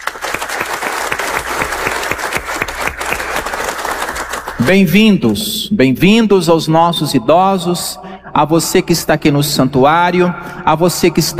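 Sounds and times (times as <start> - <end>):
audience applause: 0.0 - 4.8
speech: 4.7 - 11.3.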